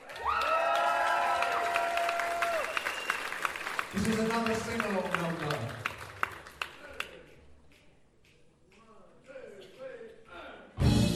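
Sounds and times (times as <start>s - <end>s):
audience cheering: 0.0s - 5.2s
audience applause: 0.0s - 7.3s
speech: 3.9s - 5.9s.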